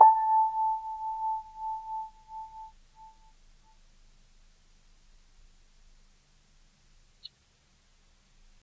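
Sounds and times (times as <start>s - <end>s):
Kawai grand piano sustained A4 note: 0.0s - 2.7s.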